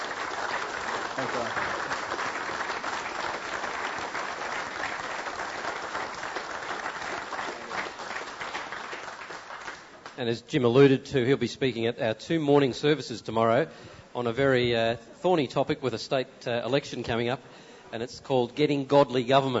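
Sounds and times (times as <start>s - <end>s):
audience applause: 0.0s - 10.1s
speech: 1.2s - 1.8s, 10.2s - 19.5s.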